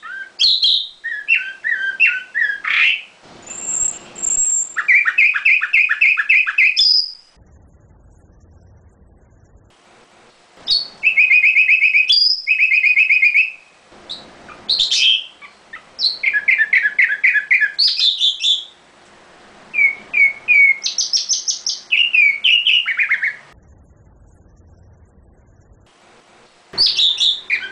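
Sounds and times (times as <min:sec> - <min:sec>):
nightingale singing variations: 0:00.0 - 0:07.3, 0:10.7 - 0:18.8, 0:19.7 - 0:23.5, 0:26.8 - 0:27.7.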